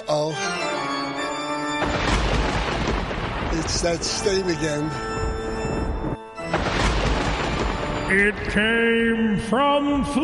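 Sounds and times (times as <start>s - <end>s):
speech: 0.1s - 0.7s, 3.6s - 5.1s, 8.1s - 10.2s
thunder roll sound effect: 1.8s - 9.1s.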